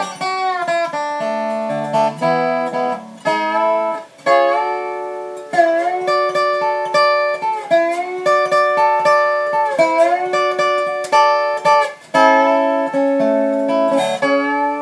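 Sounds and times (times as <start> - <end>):
steel guitar: 0.0 - 14.8.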